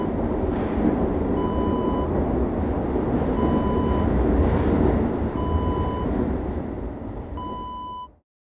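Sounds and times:
metro interior ambience: 0:00.0 - 0:08.2.

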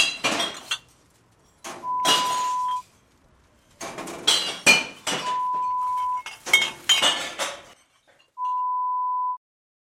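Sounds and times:
glass bottles clanking in a bottle bank: 0:00.0 - 0:02.8, 0:03.8 - 0:08.7.

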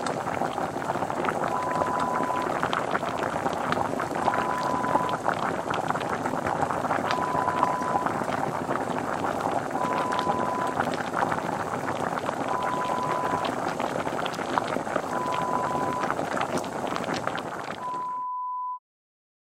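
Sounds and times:
bubbling sound effect: 0:00.0 - 0:18.1.

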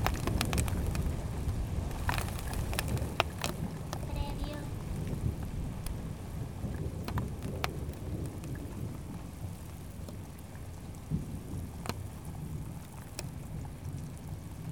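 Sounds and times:
thunder: 0:00.0 - 0:09.3
hail falling: 0:00.0 - 0:14.7
rain: 0:00.0 - 0:14.7.

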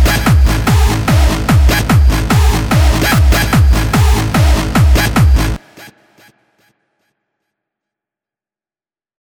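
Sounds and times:
hardstyle music: 0:00.0 - 0:06.3.

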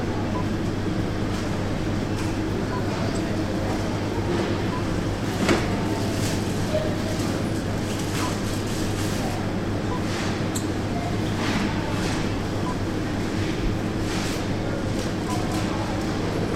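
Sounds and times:
supermarket ambience in the vegetable aisle: 0:00.0 - 0:16.5.

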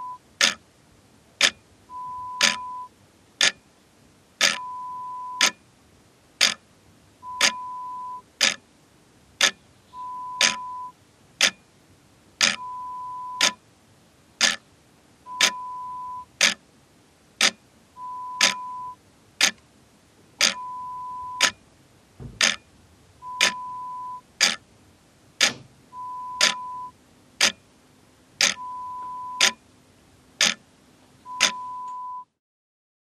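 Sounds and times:
clock ticking: 0:00.0 - 0:00.6, 0:01.4 - 0:01.6, 0:02.3 - 0:02.8, 0:03.4 - 0:03.6, 0:04.4 - 0:04.7, 0:05.4 - 0:05.6, 0:06.4 - 0:06.6, 0:07.2 - 0:08.6, 0:09.4 - 0:09.6, 0:10.3 - 0:11.6, 0:12.4 - 0:13.6, 0:14.4 - 0:14.6, 0:15.3 - 0:16.6, 0:17.4 - 0:17.6, 0:18.2 - 0:19.6, 0:20.4 - 0:21.6, 0:22.4 - 0:24.6, 0:25.4 - 0:25.7, 0:26.3 - 0:27.6, 0:28.4 - 0:29.6, 0:30.4 - 0:30.6, 0:31.3 - 0:32.0.

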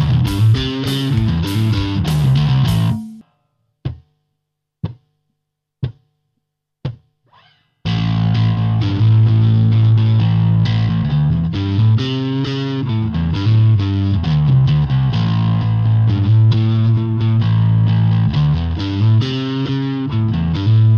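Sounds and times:
distorted pentatonic lick in A minor: 0:00.0 - 0:03.2, 0:07.4 - 0:20.9.

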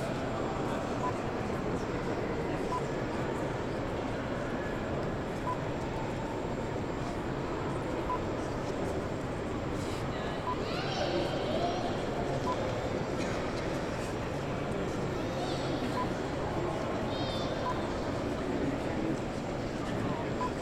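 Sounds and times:
Turbine Hall ambience in a London gallery: 0:00.0 - 0:20.6.

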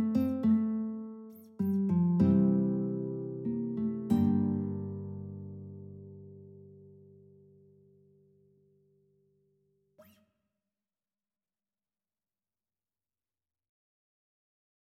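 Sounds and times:
guitar trio playing: 0:00.0 - 0:07.2.

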